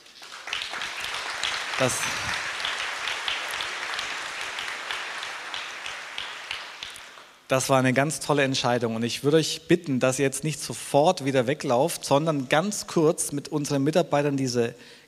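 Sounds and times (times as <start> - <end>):
audience applause: 0.0 - 7.4
speech: 1.8 - 2.5, 7.5 - 15.0.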